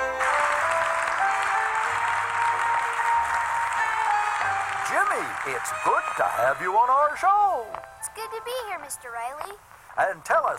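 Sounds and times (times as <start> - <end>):
game-show studio audience applause: 0.0 - 7.2
speech: 5.2 - 10.5.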